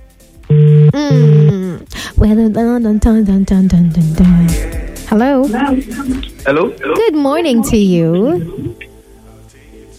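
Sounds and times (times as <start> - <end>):
voice imitating a telephone ringing: 0.5 - 1.6
speech: 2.2 - 8.8.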